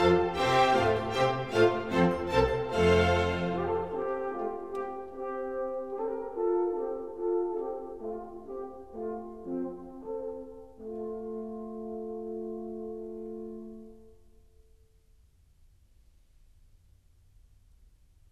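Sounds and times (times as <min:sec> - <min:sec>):
orchestral suite: 0:00.0 - 0:14.6.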